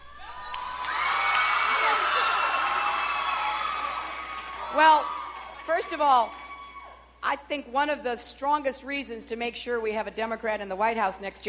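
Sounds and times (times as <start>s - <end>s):
crowd cheering: 0.0s - 7.2s
speech: 4.8s - 6.4s, 7.2s - 11.4s.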